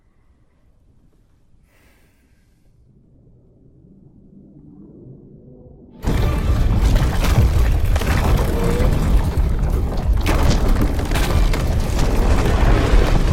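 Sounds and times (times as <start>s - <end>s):
ice around a ship cracking and grinding, broken by an iceberg: 6.0s - 13.3s.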